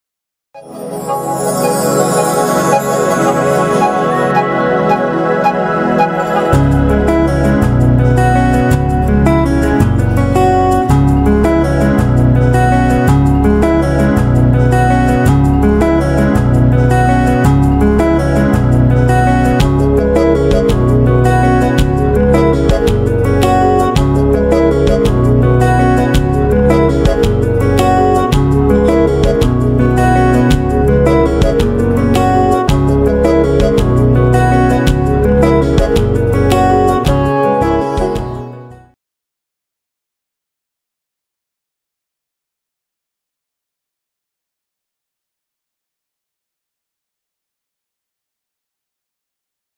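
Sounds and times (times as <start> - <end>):
Telugu love background music: 0.6 - 38.9.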